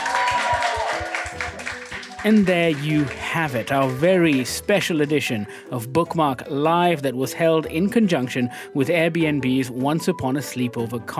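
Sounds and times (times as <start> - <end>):
audience clapping: 0.0 - 5.3
speech: 2.2 - 11.1.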